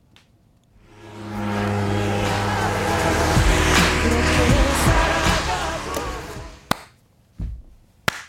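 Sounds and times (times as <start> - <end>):
car passing by: 0.8 - 6.7
loud bass-heavy music from a passing car: 0.8 - 6.7
sharp isolated hits: 0.8 - 6.7.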